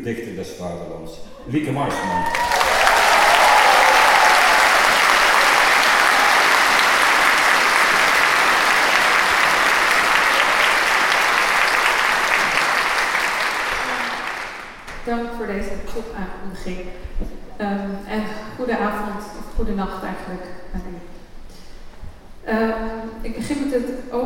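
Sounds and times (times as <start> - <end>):
speech: 0.0 - 2.6, 15.1 - 21.2, 22.5 - 24.2
audience applause: 1.9 - 14.9.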